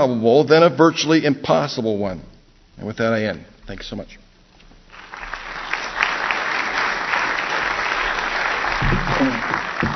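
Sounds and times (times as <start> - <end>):
speech: 0.0 - 4.2
audience applause: 4.9 - 9.9.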